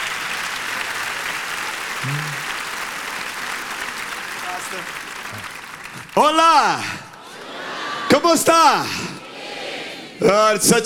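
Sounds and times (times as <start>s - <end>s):
audience applause: 0.0s - 8.1s
speech: 6.2s - 7.0s, 8.2s - 9.1s, 10.2s - 10.8s.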